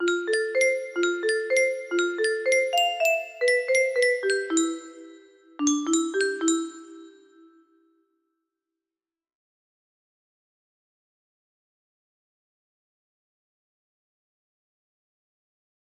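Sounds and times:
music box melody: 0:00.0 - 0:07.6.

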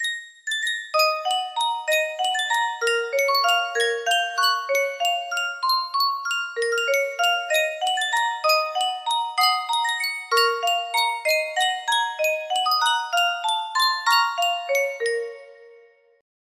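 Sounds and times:
Yunsheng music box: 0:00.0 - 0:16.0.

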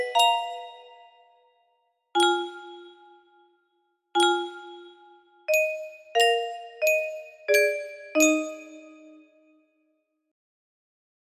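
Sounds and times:
slow music box melody in E flat: 0:00.0 - 0:01.2, 0:02.2 - 0:03.4, 0:04.2 - 0:09.2.

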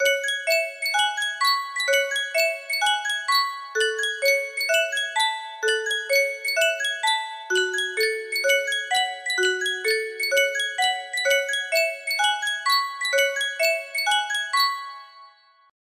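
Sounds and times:
yunsheng music box: 0:00.0 - 0:15.7.

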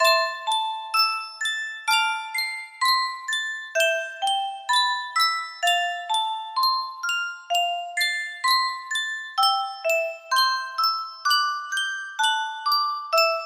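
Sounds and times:
Sankyo music box: 0:00.0 - 0:13.4.

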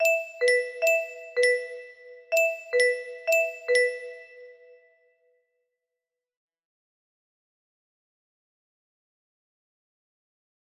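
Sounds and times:
music box melody: 0:00.0 - 0:04.8.

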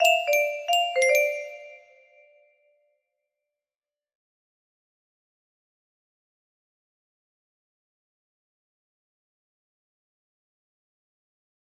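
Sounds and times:
music box melody: 0:00.0 - 0:02.1.

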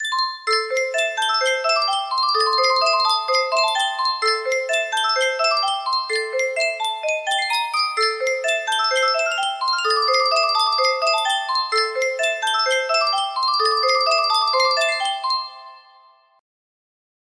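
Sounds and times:
music box: 0:00.0 - 0:16.4.

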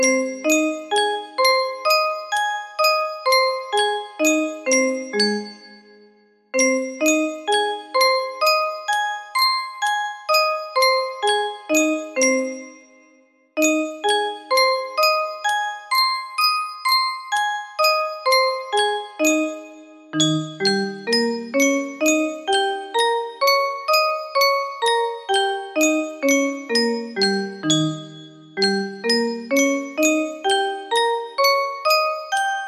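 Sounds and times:
music box melody in A flat major: 0:00.0 - 0:32.6.

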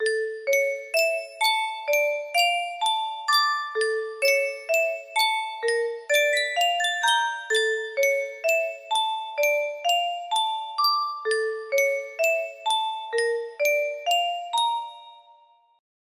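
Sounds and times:
yunsheng music box: 0:00.0 - 0:15.8.

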